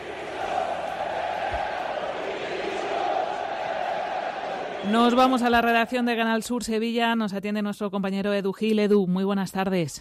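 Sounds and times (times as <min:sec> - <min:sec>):
football fans chanting for resignation: 0:00.0 - 0:06.1
speech: 0:04.8 - 0:09.9.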